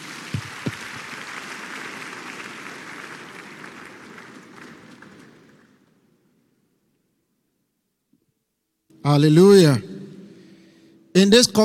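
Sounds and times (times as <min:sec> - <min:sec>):
church congregation applauding: 0:00.0 - 0:06.0
speech: 0:09.0 - 0:09.9, 0:11.2 - 0:11.6.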